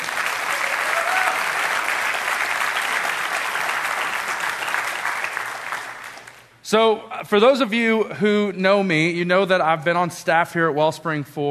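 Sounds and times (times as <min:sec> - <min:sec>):
large audience applauding: 0:00.0 - 0:06.5
speech: 0:06.7 - 0:11.4.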